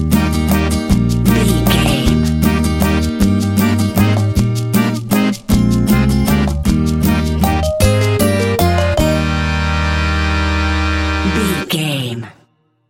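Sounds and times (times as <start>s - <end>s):
accordion: 0.0s - 11.9s
guitar: 0.0s - 12.0s.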